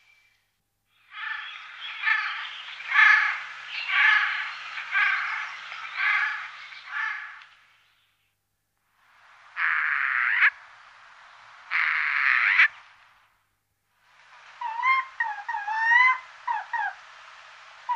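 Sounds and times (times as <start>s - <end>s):
Eurasian jay whistles, clicks and chattering: 1.0s - 7.4s, 9.6s - 10.6s, 11.7s - 12.8s, 14.6s - 17.0s.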